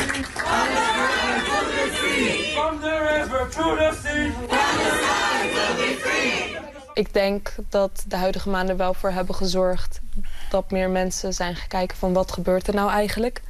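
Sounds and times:
students at Universiteit Leiden chanting pro-Palestinian slogans: 0.2s - 7.0s
speech: 7.0s - 13.4s.

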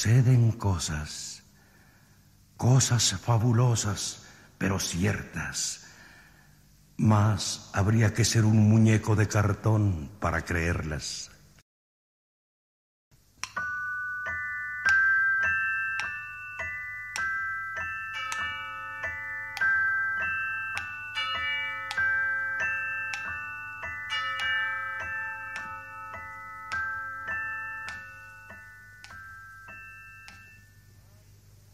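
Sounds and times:
speech: 0.0s - 1.4s, 2.6s - 5.8s, 7.0s - 11.3s
clock chiming three in the morning: 13.4s - 31.0s.

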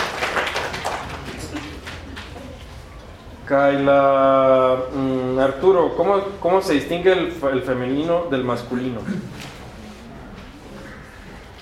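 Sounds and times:
few pairs of hands clapping in class: 0.0s - 2.5s
speech: 3.5s - 9.4s.

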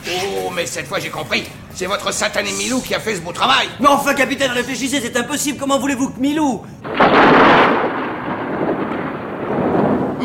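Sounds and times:
speech: 0.1s - 7.4s
thunder from a lightning strike: 6.8s - 10.2s.

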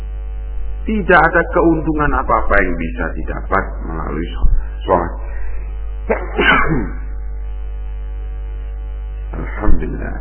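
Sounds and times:
low steady hum: 0.0s - 10.2s
speech: 0.8s - 5.2s, 6.1s - 7.0s
sneeze: 6.1s - 7.0s.

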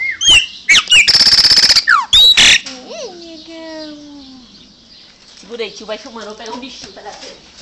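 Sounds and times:
Chopi Blackbird singing with whistles, rattles and squawks: 0.0s - 2.7s
speech: 5.5s - 7.6s.

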